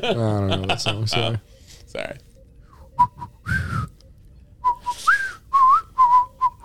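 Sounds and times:
speech: 0.0s - 2.3s, 3.0s - 3.3s
person whistling a bouncy jaunty melody: 3.0s - 4.0s, 4.6s - 6.6s.

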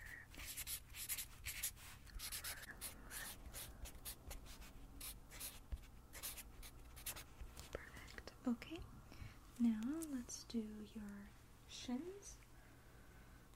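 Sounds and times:
pen scratching on paper writing down body measurements: 0.3s - 7.4s
speech: 8.5s - 9.0s, 9.6s - 12.4s.

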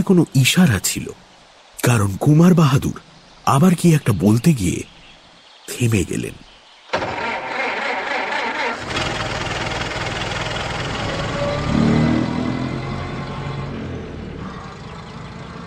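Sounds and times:
speech: 0.0s - 4.9s, 5.7s - 6.4s
nobleman's car engine starting, audio drama sound effect: 6.9s - 15.6s.

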